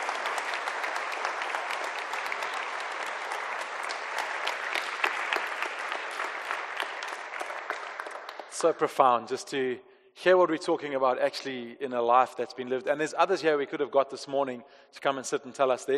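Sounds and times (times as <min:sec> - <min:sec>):
crowd clapping: 0:00.0 - 0:09.1
speech: 0:08.6 - 0:15.9.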